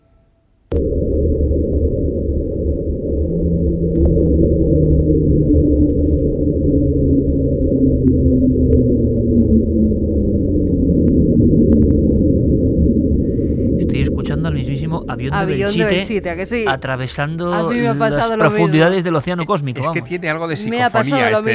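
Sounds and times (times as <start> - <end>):
underwater rumble, Antarctica: 0.7 - 17.6
low tones gliding downward in pitch underwater: 0.7 - 19.0
speech: 15.4 - 21.5.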